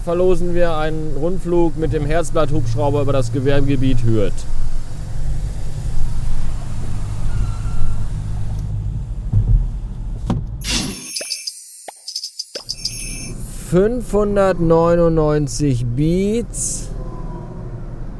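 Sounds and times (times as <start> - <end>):
speech: 0.0 - 4.6, 13.7 - 16.9
car driving on motorway: 0.0 - 10.6, 13.3 - 18.1
brighter higher-pitched musical tones: 10.6 - 13.6.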